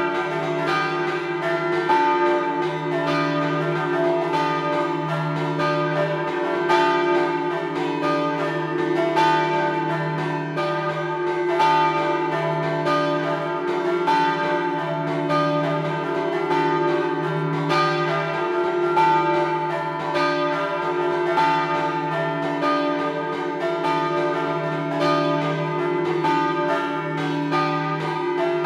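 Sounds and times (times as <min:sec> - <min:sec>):
bells rung in scampanottata style: 0:00.0 - 0:28.6.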